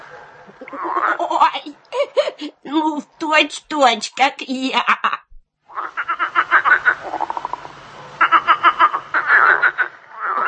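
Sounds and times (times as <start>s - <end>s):
starling mimicking a frog's croak: 0.5s - 1.7s, 5.7s - 10.4s
speech: 0.7s - 5.2s.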